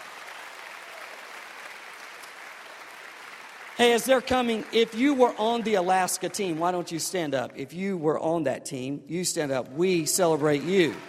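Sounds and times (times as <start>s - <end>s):
church congregation clapping: 0.0s - 7.6s, 9.8s - 11.0s
speech: 3.8s - 11.0s.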